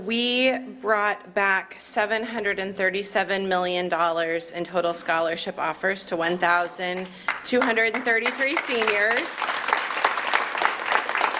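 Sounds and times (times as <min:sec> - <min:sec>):
speech: 0:00.0 - 0:09.6
crowd applauding: 0:07.1 - 0:11.3.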